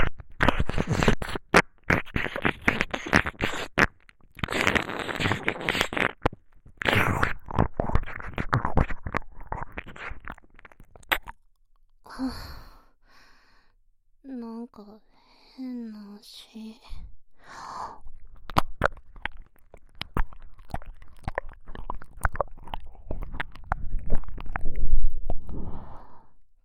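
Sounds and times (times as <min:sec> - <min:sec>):
ear licking: 0:00.0 - 0:11.5, 0:18.0 - 0:26.0.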